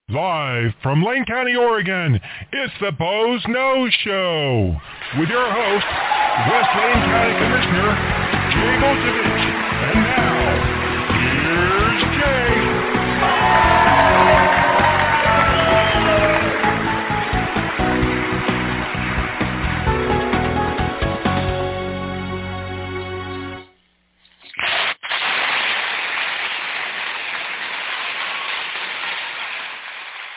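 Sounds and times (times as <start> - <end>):
speech: 0.1 - 10.0
crowd applause and cheering: 4.8 - 21.7, 24.6 - 30.3
crowd whoops and shouts: 5.9 - 7.0, 13.2 - 16.6.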